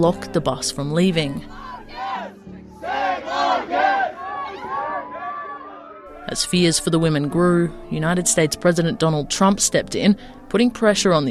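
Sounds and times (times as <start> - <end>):
speech: 0.0 - 1.7, 6.3 - 11.2
crowd of supporters chanting outside stadium: 1.5 - 7.5.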